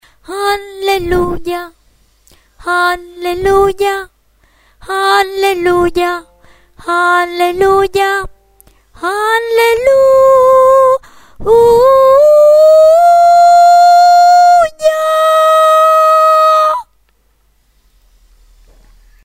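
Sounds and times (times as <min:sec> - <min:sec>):
soprano singing: 0:00.2 - 0:01.8, 0:02.6 - 0:04.1, 0:04.8 - 0:16.9.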